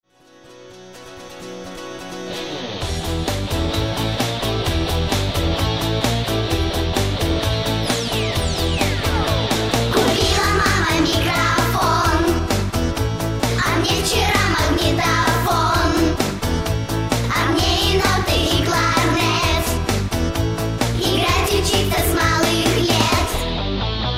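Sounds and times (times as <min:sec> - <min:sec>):
guitars playing: 0:00.2 - 0:24.1.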